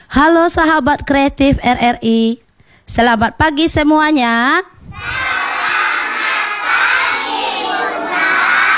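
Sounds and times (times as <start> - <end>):
speech: 0.1 - 5.3
group of kindergarten children shouting and cheering in a radio studio: 4.9 - 8.7.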